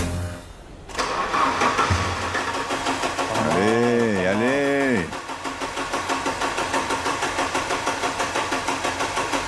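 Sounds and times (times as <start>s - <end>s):
car engine starting after engine swap: 0.1s - 9.4s.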